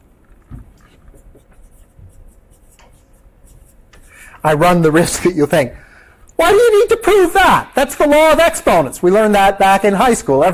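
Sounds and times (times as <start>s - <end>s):
chalk or marker writing on a board during a mathematics lecture: 0.8s - 4.2s
speech: 4.4s - 10.5s.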